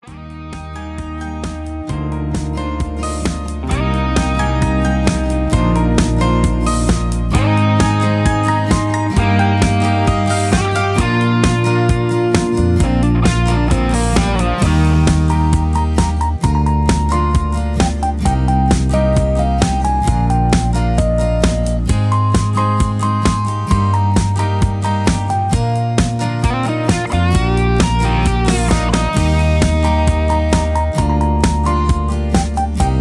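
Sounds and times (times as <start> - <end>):
instrumental music with leads: 0.0 - 32.9.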